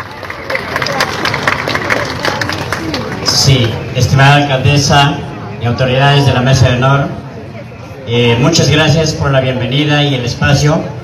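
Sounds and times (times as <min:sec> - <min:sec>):
audience applause: 0:00.0 - 0:03.9
speech: 0:03.5 - 0:07.2, 0:08.1 - 0:11.0.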